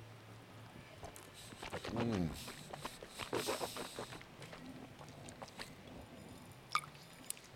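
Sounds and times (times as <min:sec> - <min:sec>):
wet sips and mouth smacks tasting Jura single malt 18 year whisky: 0:01.0 - 0:05.8
person humming: 0:01.8 - 0:02.6.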